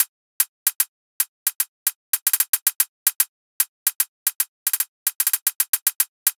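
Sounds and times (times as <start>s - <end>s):
hi-hat loop at 150 bpm: 0.0s - 0.9s, 1.5s - 3.3s, 3.9s - 6.3s.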